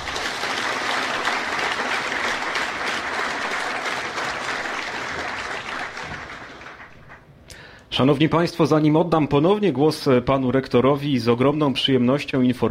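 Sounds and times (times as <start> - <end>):
applause at a technical university's matriculation ceremony: 0.0 - 7.3
speech: 8.0 - 12.6.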